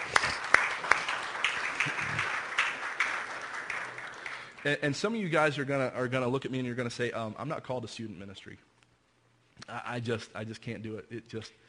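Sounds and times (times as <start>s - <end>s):
audience applause: 0.0s - 4.8s
speech: 4.6s - 8.7s, 9.6s - 11.6s.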